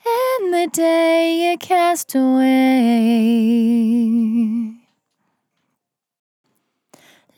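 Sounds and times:
vocal in F at 65 bpm: 0.0 - 4.8.

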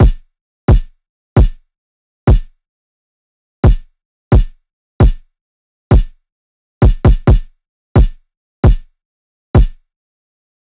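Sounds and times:
kick drum loop at 132 bpm: 0.0 - 1.6, 2.3 - 2.5, 3.6 - 5.3, 5.9 - 6.2, 6.8 - 8.9, 9.6 - 9.8.

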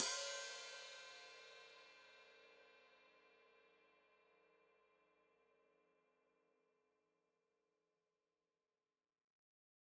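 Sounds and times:
open hi-hat played with foot: 0.0 - 1.6.

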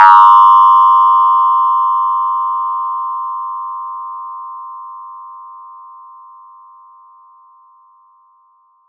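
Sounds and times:
ringing effect: 0.0 - 3.2.

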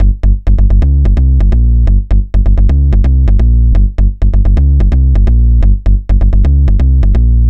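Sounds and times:
jump bass music: 0.0 - 7.4.

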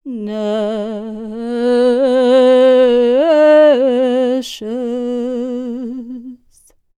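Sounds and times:
Serbian singing voices: 0.0 - 6.7.

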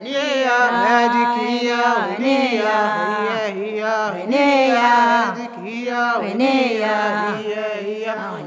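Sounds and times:
mixed choir singing: 0.0 - 8.4.

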